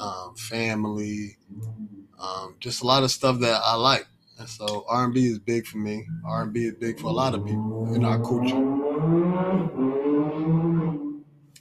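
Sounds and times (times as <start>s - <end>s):
speech: 0.0s - 9.8s
bike engines roaring on a street in West Philly: 6.1s - 11.1s.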